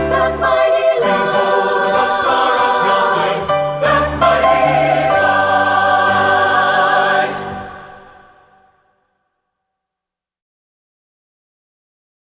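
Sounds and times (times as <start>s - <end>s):
SATB four-part choir singing: 0.0s - 9.0s.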